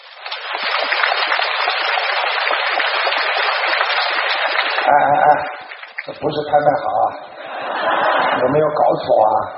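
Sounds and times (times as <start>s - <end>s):
crowd applauding at an auction: 0.0s - 6.2s
speech: 4.9s - 5.4s, 6.1s - 7.4s, 8.4s - 9.5s
laughter: 6.8s - 9.5s.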